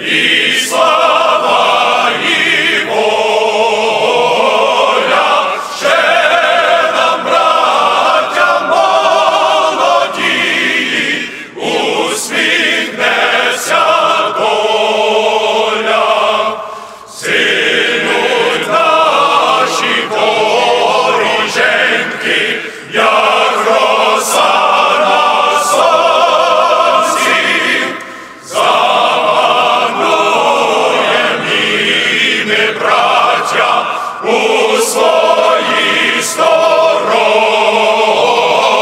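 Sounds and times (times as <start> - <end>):
male chorus singing a national anthem: 0.0 - 38.8.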